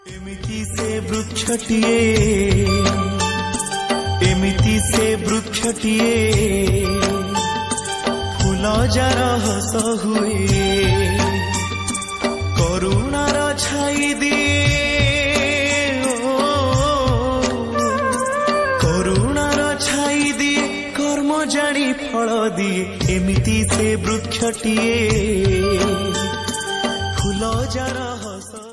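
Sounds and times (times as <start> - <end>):
bhajan ringtone: 0.0 - 28.7.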